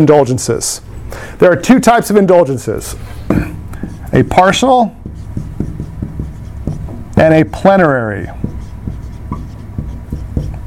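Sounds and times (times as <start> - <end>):
speech: 0.0 - 5.0, 7.2 - 8.5
pen writing the word plenary: 3.8 - 10.6.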